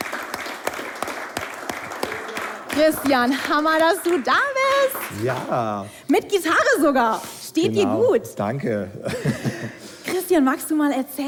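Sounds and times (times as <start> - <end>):
audience clapping: 0.0 - 5.8
speech: 2.8 - 11.2
laughter: 8.9 - 10.0.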